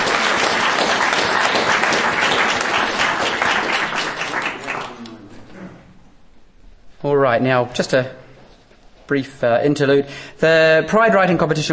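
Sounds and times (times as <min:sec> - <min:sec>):
applause: 0:00.0 - 0:05.1
speech: 0:07.3 - 0:08.2, 0:09.1 - 0:11.7.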